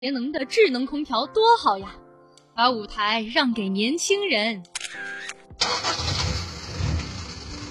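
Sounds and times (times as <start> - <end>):
speech: 0.0 - 2.0, 2.6 - 6.3
old car engine starting and idling roughly: 5.6 - 7.6.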